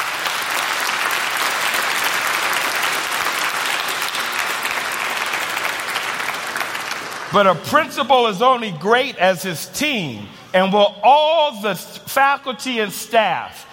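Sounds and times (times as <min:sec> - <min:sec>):
audience applause: 0:00.0 - 0:07.6
speech: 0:07.3 - 0:13.7.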